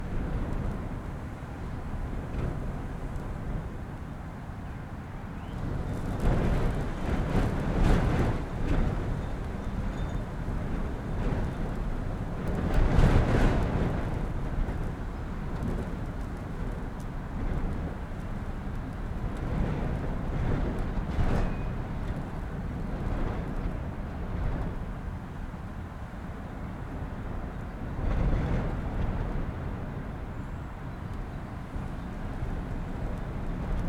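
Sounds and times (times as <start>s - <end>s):
blustery wind in an attic interior: 0.0s - 33.8s.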